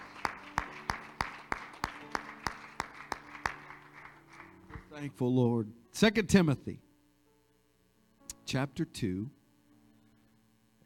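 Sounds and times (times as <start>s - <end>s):
audience clapping hands: 0.0s - 4.9s
speech: 5.0s - 6.8s, 8.5s - 9.4s.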